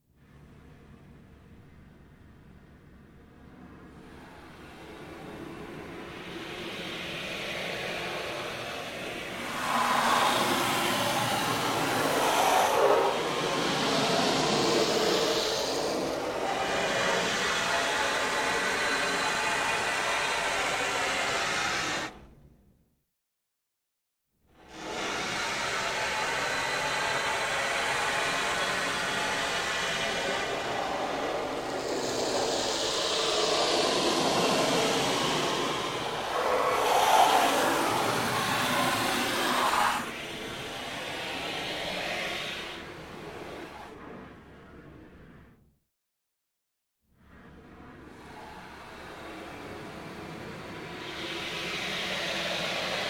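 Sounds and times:
soft long water spray inside a car: 0:04.7 - 0:22.1, 0:24.7 - 0:43.9, 0:48.2 - 0:53.0.

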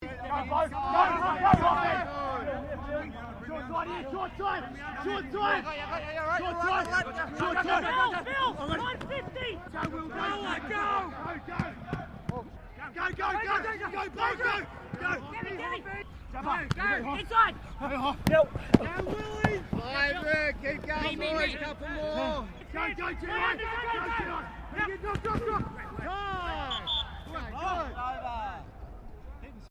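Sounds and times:
rugby league team training: 0:00.0 - 0:29.6.

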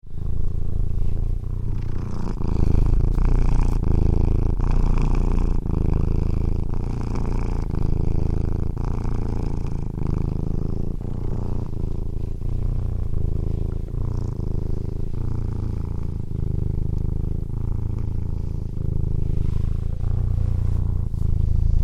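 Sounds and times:
cat purring: 0:00.0 - 0:21.8.

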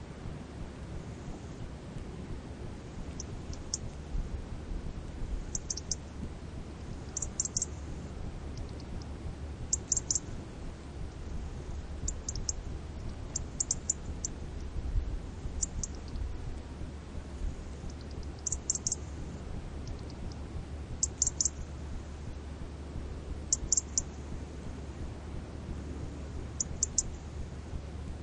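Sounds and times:
faint ocean: 0:00.0 - 0:28.2
insects: 0:02.7 - 0:04.2, 0:05.1 - 0:14.7, 0:15.3 - 0:25.1, 0:25.8 - 0:27.8
small birds tweeting by the sea: 0:03.1 - 0:03.9, 0:05.4 - 0:06.1, 0:07.0 - 0:07.7, 0:08.5 - 0:10.3, 0:11.3 - 0:14.4, 0:15.5 - 0:16.3, 0:17.8 - 0:19.0, 0:19.8 - 0:20.4, 0:21.0 - 0:21.6, 0:23.5 - 0:24.1, 0:26.5 - 0:27.1.

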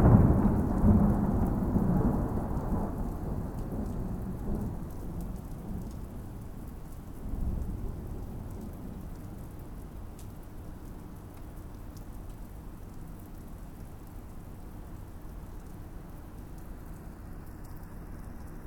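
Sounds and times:
big thunder in a thunderstorm: 0:00.0 - 0:05.8
thunderstorm rain: 0:00.0 - 0:18.6.

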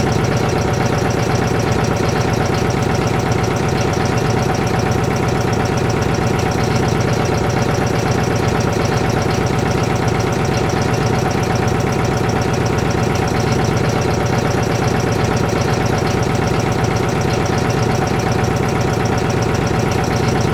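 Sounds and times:
industrial air compressor motor running heard from underneath: 0:00.0 - 0:20.5.

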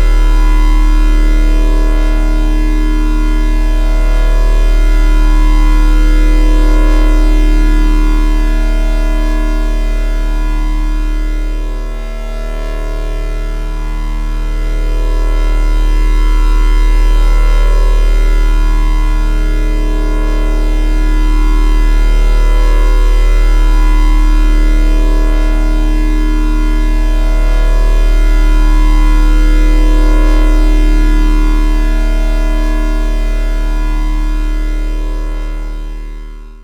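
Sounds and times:
sci-fi electrical hum: 0:00.0 - 0:36.6.

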